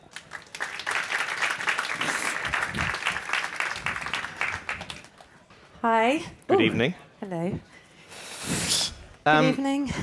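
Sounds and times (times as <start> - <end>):
audience at a book event clapping to welcome a speaker: 0.0 - 5.4
speech: 5.8 - 7.8, 9.3 - 10.0.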